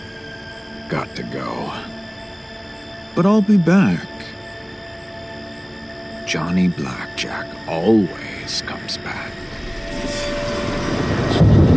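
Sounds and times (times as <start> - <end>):
windy hiss: 0.0 - 11.7
speech: 0.9 - 2.0, 3.2 - 4.3, 6.3 - 10.2
rumble of thunder: 9.4 - 11.7.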